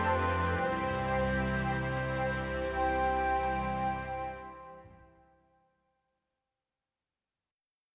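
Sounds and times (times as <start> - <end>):
slow Andean flute melody: 0.0 - 5.3.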